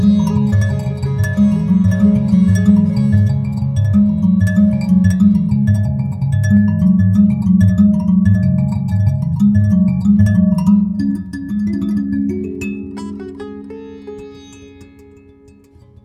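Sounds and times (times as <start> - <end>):
sitar: 0.0 - 6.8, 12.4 - 16.0
mbira: 0.0 - 16.0.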